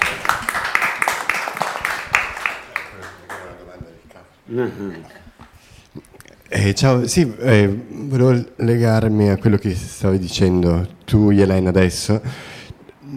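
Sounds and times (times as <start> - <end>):
audience applause: 0.0 - 3.8
speech: 4.5 - 5.3, 6.6 - 12.5.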